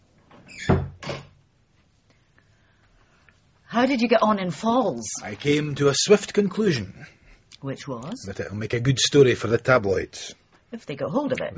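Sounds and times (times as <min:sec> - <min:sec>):
door swinging shut with a solid low thud: 0:00.3 - 0:01.4
speech: 0:03.8 - 0:11.5.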